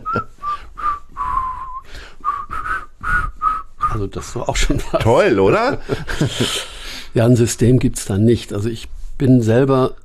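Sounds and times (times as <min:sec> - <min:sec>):
person whistling a song melody: 0:00.0 - 0:04.0
speech: 0:04.0 - 0:10.0
laughter: 0:04.7 - 0:06.8.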